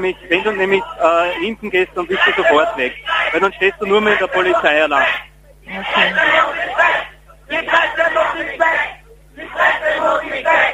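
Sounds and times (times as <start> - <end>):
speech: 0.0 - 10.7
crowd of protesters shouting in unison: 0.2 - 10.7.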